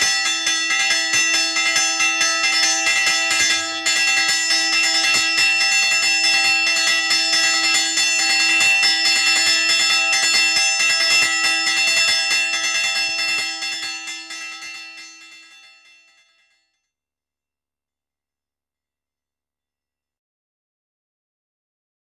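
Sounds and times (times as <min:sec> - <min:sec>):
sanctuary bell ringing a fast march in Drezzo Como: 0:00.0 - 0:16.5.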